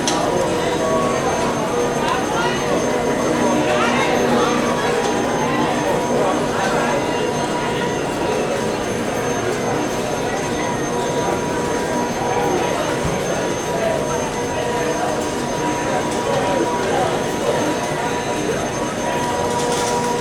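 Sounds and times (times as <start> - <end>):
murmur of many overlapping voices in a busy casino: 0.0 - 20.1.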